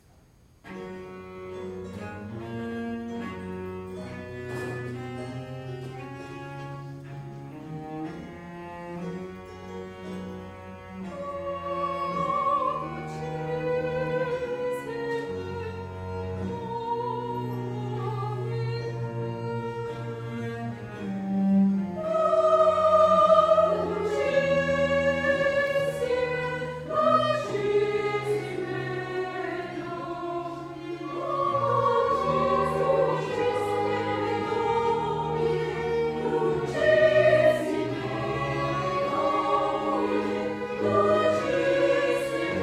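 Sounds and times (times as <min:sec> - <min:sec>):
women's choir singing: 0:10.8 - 0:20.3, 0:21.4 - 0:42.6.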